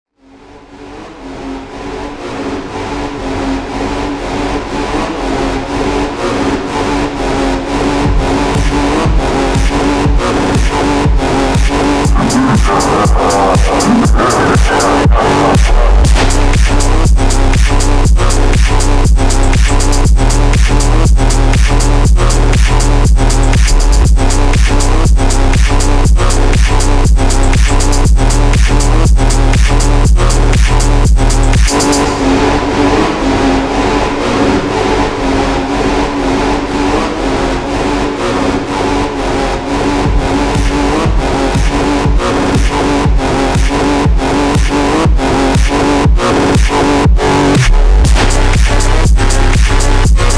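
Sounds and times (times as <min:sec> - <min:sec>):
phonk music: 0:00.4 - 0:50.3.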